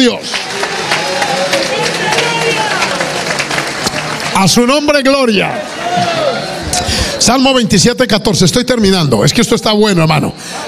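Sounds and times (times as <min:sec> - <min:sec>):
speech: 0:00.0 - 0:00.4, 0:04.4 - 0:06.2, 0:07.2 - 0:10.6
audience applause: 0:00.0 - 0:07.2.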